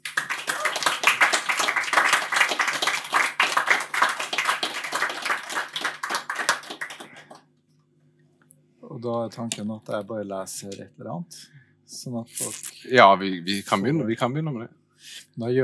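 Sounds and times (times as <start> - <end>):
audience applause: 0.0 - 7.4
speech: 9.0 - 15.6.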